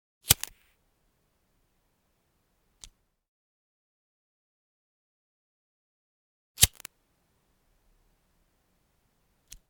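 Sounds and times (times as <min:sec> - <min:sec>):
disposable lighter: 0:00.2 - 0:00.8, 0:06.6 - 0:06.9.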